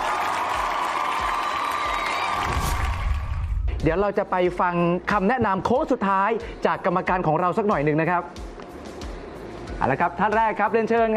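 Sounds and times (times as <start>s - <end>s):
audience applause and cheering: 0.0s - 3.8s
speech: 3.8s - 8.5s, 9.8s - 11.1s.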